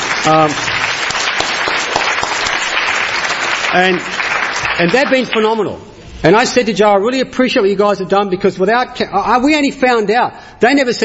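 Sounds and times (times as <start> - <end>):
short cheering voices: 0.0 - 5.2
crowd clapping: 0.0 - 5.8
speech: 0.2 - 0.7, 3.7 - 4.2, 4.8 - 11.0.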